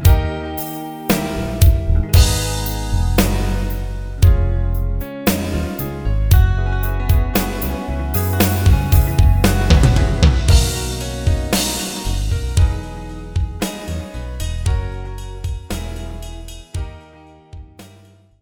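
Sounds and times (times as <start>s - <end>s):
backing track in B flat without saxophone lead: 0.0s - 14.0s.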